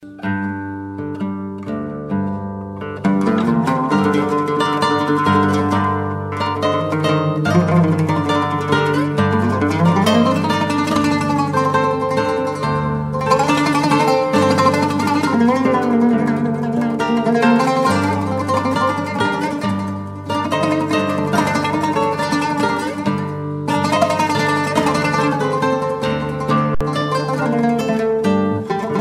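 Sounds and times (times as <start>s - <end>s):
guitar: 0.0s - 29.0s
lute: 0.0s - 29.0s.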